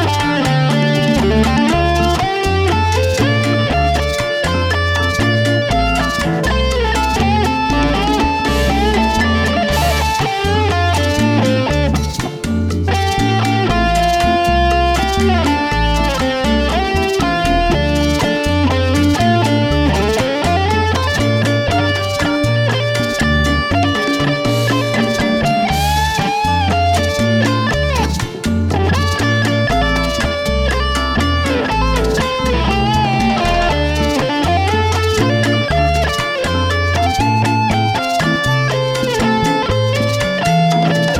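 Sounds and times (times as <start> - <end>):
music in D minor: 0.0 - 41.1.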